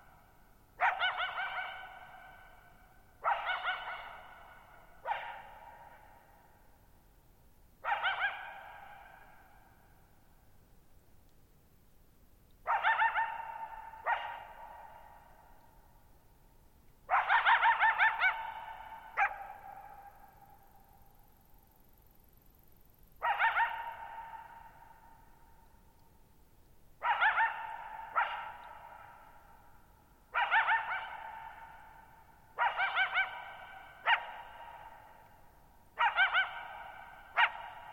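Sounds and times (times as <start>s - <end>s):
coyote barking: 0.1s - 6.3s, 7.8s - 9.7s, 12.6s - 15.5s, 17.1s - 20.6s, 23.2s - 25.2s, 27.0s - 37.9s.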